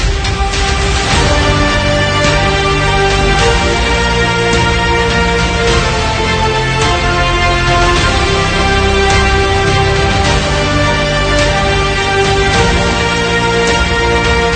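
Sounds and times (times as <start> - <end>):
epic music: 0.0 - 14.5.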